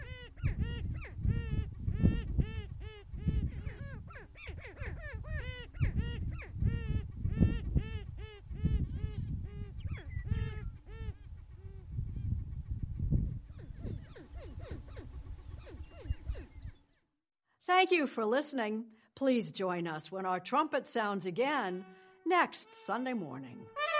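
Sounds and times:
greater prairie chickens courtship calls at Fort Pierre National Grassland: 0:00.0 - 0:12.6, 0:13.5 - 0:16.9
speech: 0:17.7 - 0:23.8.

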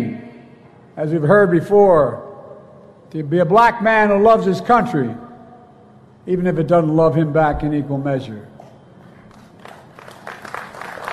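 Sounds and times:
speech: 0:01.0 - 0:02.3, 0:03.1 - 0:05.2, 0:06.2 - 0:08.5
sporadic applause from a large crowd: 0:09.6 - 0:11.1.

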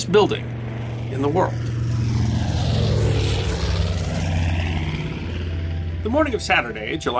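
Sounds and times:
speech: 0:00.0 - 0:02.2, 0:06.0 - 0:07.1
propeller bomber plane flying: 0:00.0 - 0:07.1.

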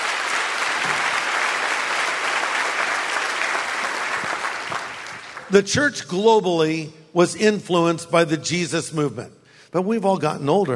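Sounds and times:
audience clapping: 0:00.0 - 0:05.7
speech: 0:05.5 - 0:10.7.

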